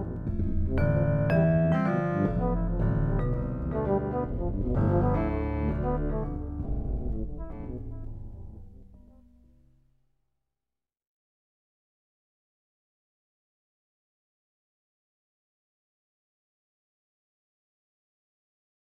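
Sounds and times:
DNA music: 0.0s - 10.3s.

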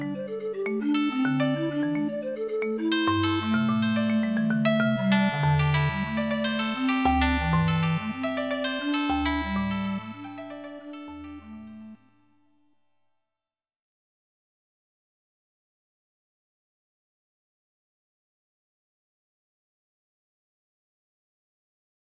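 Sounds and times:
comma scale steps: 0.0s - 12.0s.

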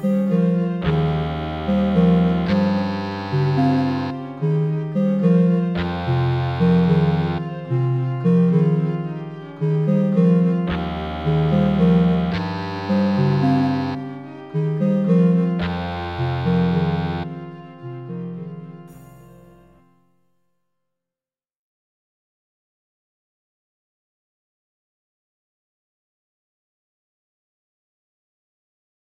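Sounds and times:
sine wave mobile tones in warped seven equal tuning: 0.0s - 8.8s, 10.4s - 17.4s.

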